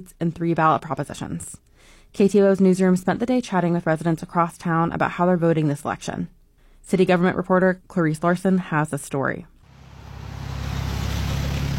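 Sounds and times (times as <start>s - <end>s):
speech: 0.0s - 9.5s
cars zooming past in the rain at a bridge intersection: 9.7s - 11.7s.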